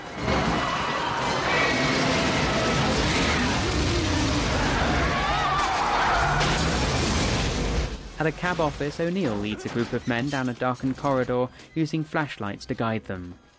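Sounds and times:
rush of flames: 0.0s - 8.2s
cars hurled and crashing: 0.0s - 10.1s
crunching metal: 0.0s - 11.8s
speech: 8.2s - 13.4s.

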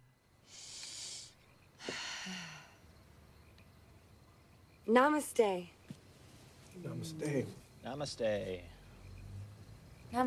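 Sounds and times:
woman breathing deeply with eyes closed and hands pressed together: 0.4s - 2.8s
speech: 4.9s - 5.8s, 6.8s - 8.7s.

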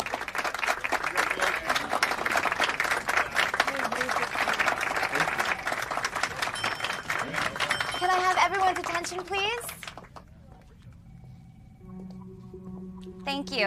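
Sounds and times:
colleagues applauding in office: 0.0s - 10.8s
faint voices murmuring: 0.7s - 11.4s
speech: 8.5s - 9.7s.

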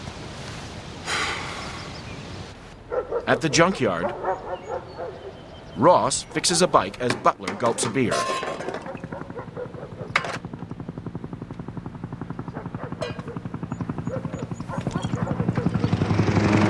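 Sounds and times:
speech: 3.2s - 4.6s, 5.8s - 8.5s
small helicopter rotor thumping: 5.8s - 16.6s.

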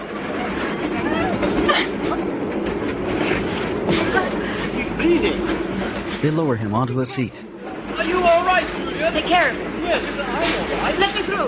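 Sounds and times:
train carriage rolling along the rails: 0.0s - 6.2s, 7.8s - 11.4s
speech: 6.2s - 7.5s, 8.2s - 11.4s.

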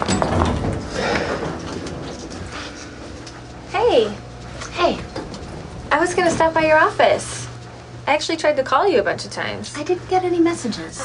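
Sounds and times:
elevator door closing: 0.0s - 7.7s
speech: 6.1s - 7.4s, 8.1s - 11.0s.

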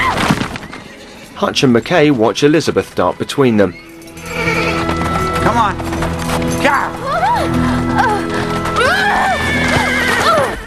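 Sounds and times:
horse hooves clattering: 0.0s - 10.6s
speech: 1.4s - 4.4s
horse whinnying and neighing: 3.7s - 5.6s, 7.0s - 10.6s.

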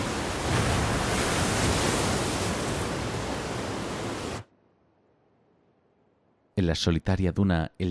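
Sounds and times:
waves breaking on wet sand in a cove beneath cliffs: 0.0s - 4.5s
speech: 6.7s - 7.8s.

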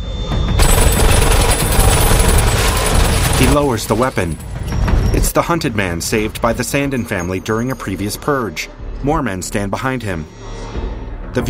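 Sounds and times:
flashbang grenade exploding in a film scene: 0.6s - 4.5s
speech: 3.6s - 4.5s, 5.1s - 11.4s.

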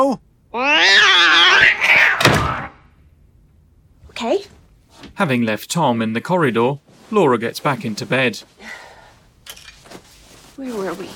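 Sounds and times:
speech: 0.0s - 1.8s, 5.2s - 8.8s, 10.6s - 11.1s
male house cat meowing: 0.5s - 2.7s.

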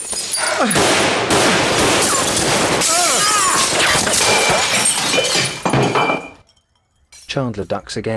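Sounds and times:
windows shattering from gunfire: 0.0s - 7.3s
speech: 0.6s - 1.3s, 7.4s - 8.1s
gunfire: 0.7s - 2.8s.

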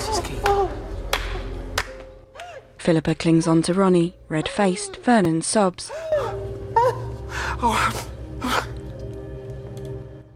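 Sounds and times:
slow hand clapping: 0.4s - 2.6s
speech: 2.8s - 7.0s, 7.6s - 8.7s.

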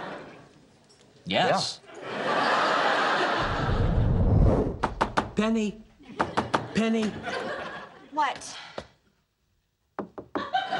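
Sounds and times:
speech: 1.3s - 1.8s, 5.4s - 5.9s, 6.7s - 7.5s, 8.2s - 8.7s
laughter: 1.9s - 4.1s, 6.0s - 8.1s, 10.4s - 10.7s
knocking on an open door: 10.0s - 10.5s.

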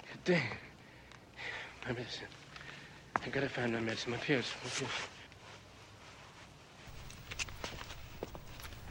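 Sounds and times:
speech: 0.2s - 0.6s, 1.8s - 2.4s, 3.2s - 5.1s
footsteps of a man running along a flat roof of a tower block: 6.9s - 8.8s.

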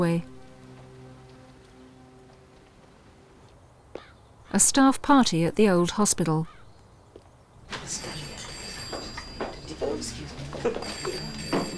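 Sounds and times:
speech: 0.0s - 0.3s, 4.5s - 6.6s, 10.0s - 11.3s
telephone bell ringing at a staff party at an old hospital: 7.7s - 11.7s.

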